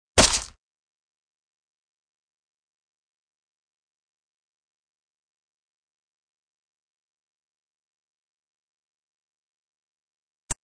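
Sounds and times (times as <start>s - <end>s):
fight sounds: 0.2s - 0.6s.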